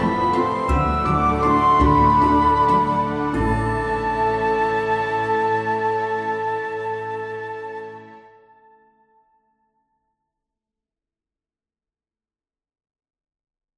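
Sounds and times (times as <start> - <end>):
waltz music: 0.0 - 8.4.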